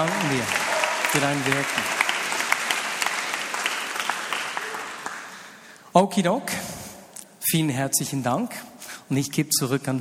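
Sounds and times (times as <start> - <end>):
speech: 0.0 - 1.9, 6.0 - 6.7, 7.5 - 10.0
audience applause: 0.0 - 5.6.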